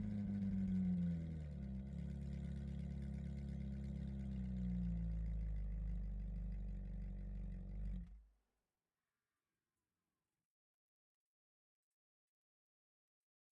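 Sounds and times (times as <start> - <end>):
2013 Ferrari 458 straight pipes exhaust: 0.0 - 8.1.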